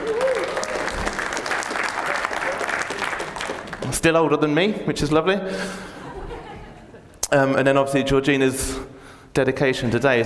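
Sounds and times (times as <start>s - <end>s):
whoops: 0.0s - 1.3s
crowd clapping and cheering: 0.0s - 4.1s
speech: 3.9s - 5.9s, 7.3s - 10.2s
laughter: 5.8s - 7.2s.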